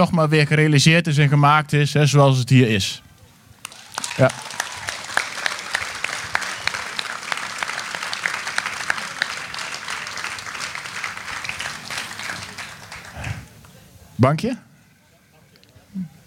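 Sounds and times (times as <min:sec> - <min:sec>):
speech: 0:00.0 - 0:03.1, 0:04.2 - 0:04.5, 0:14.2 - 0:14.7
audience applause: 0:03.6 - 0:13.6.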